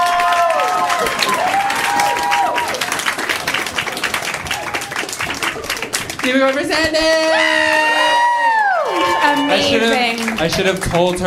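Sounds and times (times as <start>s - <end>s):
high whoops and cheers: 0.0s - 2.9s, 7.2s - 9.9s
live audience applause: 0.0s - 11.2s
speech: 6.2s - 7.8s, 9.4s - 11.2s.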